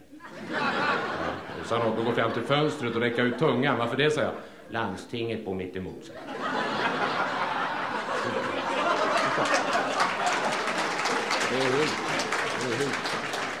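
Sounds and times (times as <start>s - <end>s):
laughter: 0.0s - 4.0s, 6.2s - 13.5s
speech: 1.7s - 6.4s
audience applause: 6.9s - 13.5s.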